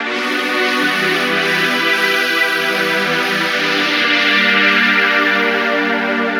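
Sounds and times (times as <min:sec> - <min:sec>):
trance synth pad: 0:00.1 - 0:06.3.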